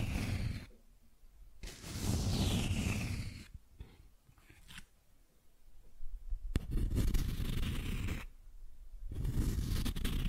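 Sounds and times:
cardboard scratched and rubbed: 0.0 - 0.7, 1.6 - 3.5, 6.6 - 8.3, 9.1 - 10.2.

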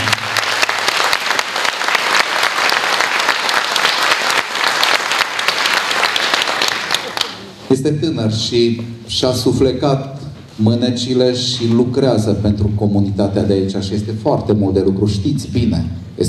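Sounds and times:
audience applause: 0.0 - 7.6
speech: 7.7 - 16.2.

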